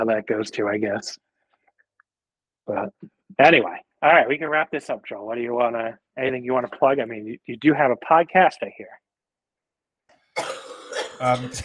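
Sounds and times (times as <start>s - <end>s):
speech: 0.0s - 1.3s, 2.7s - 9.0s, 11.2s - 11.6s
coughing fit: 10.4s - 11.6s.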